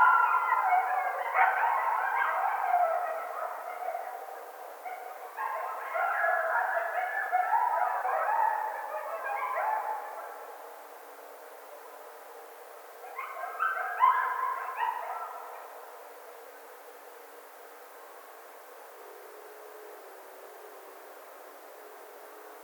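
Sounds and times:
coyote howling: 0.0 - 10.5, 13.1 - 15.6.

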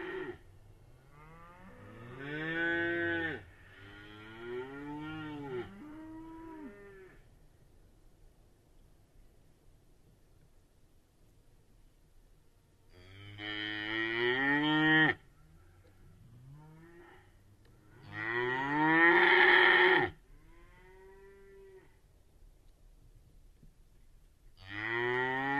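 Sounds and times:
cattle: 1.0 - 7.3, 12.9 - 22.0, 24.6 - 25.5.

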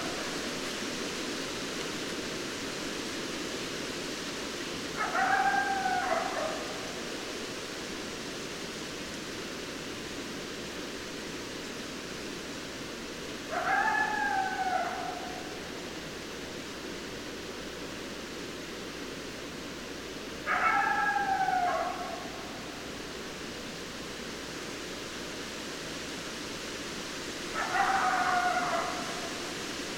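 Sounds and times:
coyote howling: 0.0 - 0.5, 5.0 - 7.0, 13.5 - 15.8, 20.4 - 23.0, 27.5 - 29.6
background hiss: 0.0 - 29.9.

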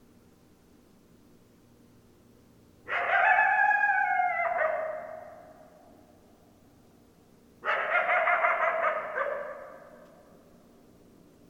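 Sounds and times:
coyote howling: 2.9 - 6.0, 7.6 - 10.0.

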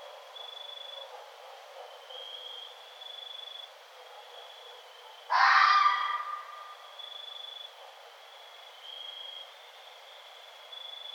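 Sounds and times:
red fox screaming: 5.3 - 6.8.

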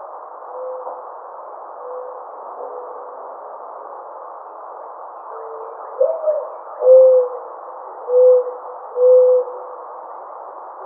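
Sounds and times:
mourning dove soft cooing: 6.0 - 7.4, 8.0 - 9.7.

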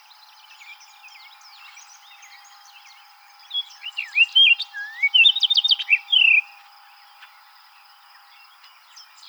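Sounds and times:
Orchard oriole song: 0.0 - 7.4.

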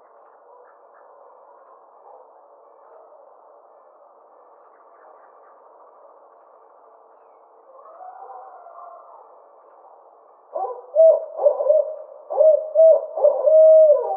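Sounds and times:
Barred owl giving low hoots: 10.5 - 14.1.

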